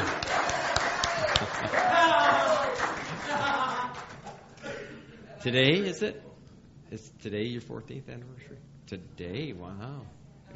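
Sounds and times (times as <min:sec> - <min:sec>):
audience applause: 0:00.0 - 0:04.3
laughter: 0:01.3 - 0:05.4
speech: 0:05.4 - 0:06.3, 0:06.9 - 0:10.2.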